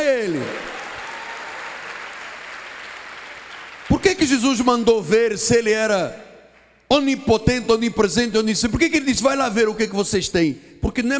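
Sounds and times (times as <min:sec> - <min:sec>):
audience clapping: 0:00.0 - 0:05.0, 0:06.5 - 0:06.9
speech: 0:04.2 - 0:06.2, 0:06.9 - 0:11.1.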